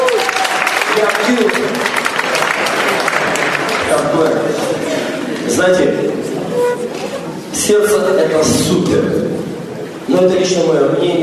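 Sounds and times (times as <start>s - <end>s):
crowd clapping: 0.0s - 5.8s
voices calling out and cheering: 0.0s - 7.5s
speech: 1.0s - 2.0s, 3.9s - 4.8s, 5.5s - 9.4s, 10.1s - 11.2s.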